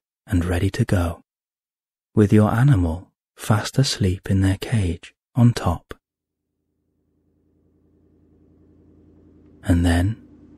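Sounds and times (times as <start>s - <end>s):
speech: 0.3s - 1.2s, 2.2s - 5.9s, 9.6s - 10.2s
distant car engine purring: 7.0s - 10.5s.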